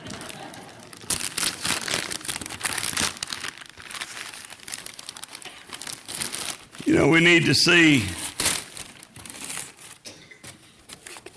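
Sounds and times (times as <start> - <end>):
wrapping paper crinkling and tearing as a gift is ripped open: 0.0 - 6.9, 8.2 - 10.1
speech: 6.9 - 8.2.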